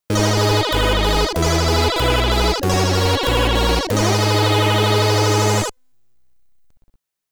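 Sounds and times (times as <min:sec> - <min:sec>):
SID stereo stage clear chiptune music: 0:00.1 - 0:05.7.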